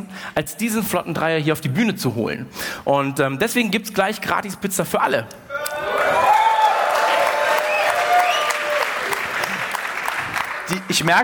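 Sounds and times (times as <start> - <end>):
speech: 0.0 - 6.2, 10.7 - 11.2
audience applause: 5.8 - 11.2.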